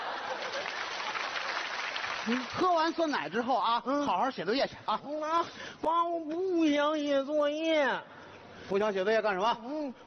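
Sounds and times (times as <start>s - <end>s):
applause in a home skit: 0.3s - 2.6s
speech: 2.2s - 10.0s.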